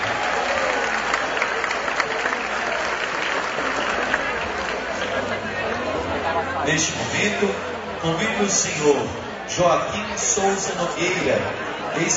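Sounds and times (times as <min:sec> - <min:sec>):
large audience applause: 0:00.0 - 0:06.2
speech: 0:06.7 - 0:12.1.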